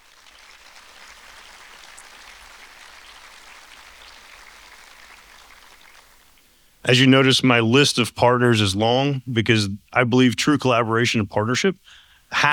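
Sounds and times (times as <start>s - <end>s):
crowd applauding: 0.0s - 6.3s
speech: 6.9s - 12.5s.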